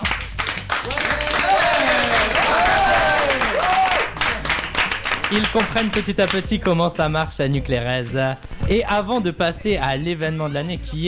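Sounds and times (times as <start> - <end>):
audience applause: 0.0 - 6.4
crowd cheering with raised voices: 0.6 - 6.4
speech: 5.3 - 11.0.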